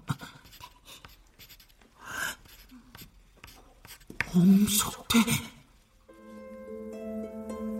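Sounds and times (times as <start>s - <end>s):
scratchy writing on paper: 0.1s - 4.7s
speech: 4.4s - 5.5s.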